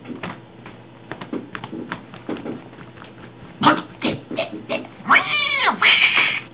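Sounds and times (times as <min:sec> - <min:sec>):
cat: 0:03.7 - 0:06.5.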